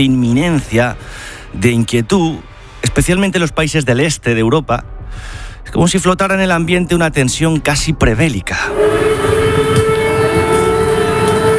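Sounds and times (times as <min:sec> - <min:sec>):
speech: 0:00.0 - 0:09.1
air-raid siren: 0:08.6 - 0:11.5.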